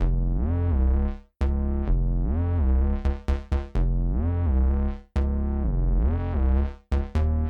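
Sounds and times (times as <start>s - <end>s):
sub synth: 0.0s - 7.4s.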